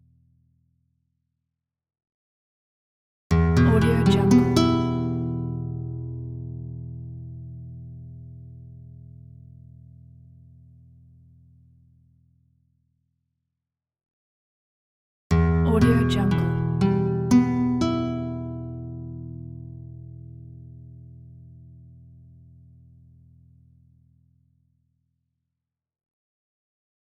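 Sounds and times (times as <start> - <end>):
western classical guitar chord: 3.4 - 8.4, 15.4 - 21.4.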